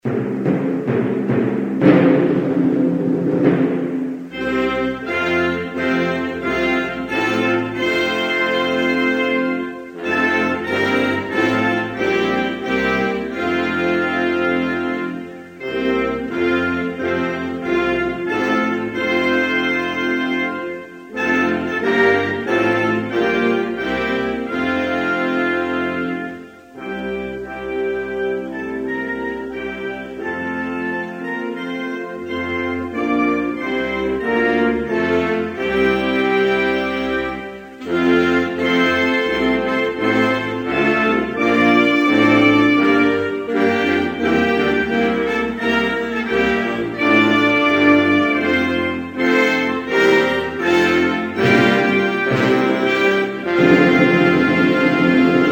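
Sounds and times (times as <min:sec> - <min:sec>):
national anthem music: 0:00.0 - 0:55.4.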